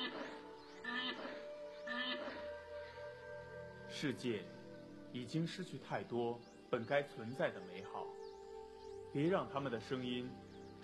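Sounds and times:
West African black rhinoceros bellowing calls: 0.0 - 3.0
speech: 4.0 - 8.2, 9.1 - 10.5.

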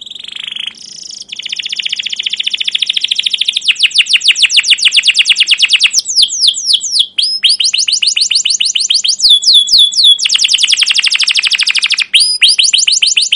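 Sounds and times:
canary singing long excited phrases: 0.0 - 13.3.

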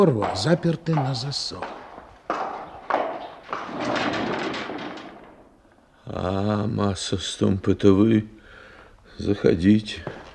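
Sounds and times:
speech: 0.0 - 1.8, 6.1 - 8.4, 9.2 - 10.2
horse hooves clip-clopping: 0.0 - 5.4.

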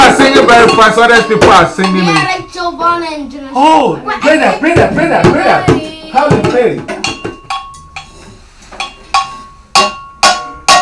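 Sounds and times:
bell clanging: 0.0 - 2.8, 4.1 - 10.8
speech: 0.4 - 7.0.

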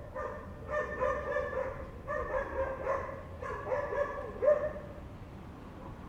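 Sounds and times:
dogs barking in short harmonic bursts: 0.0 - 5.0.

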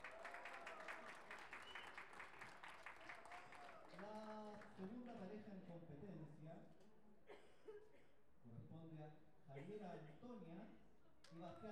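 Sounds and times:
audience applause: 0.0 - 4.7
speech: 4.8 - 6.8, 8.4 - 11.7.

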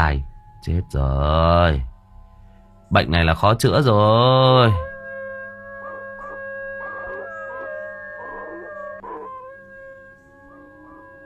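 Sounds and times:
speech: 0.0 - 1.9, 2.9 - 4.9
steady tonal hum: 0.0 - 11.2
dogs howling: 4.3 - 11.2
person with face turned up imitating a dog howling: 5.8 - 11.2.

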